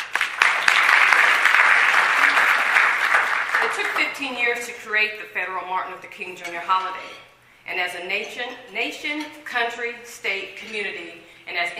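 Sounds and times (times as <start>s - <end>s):
audience applause: 0.0s - 4.1s
speech: 3.8s - 11.7s.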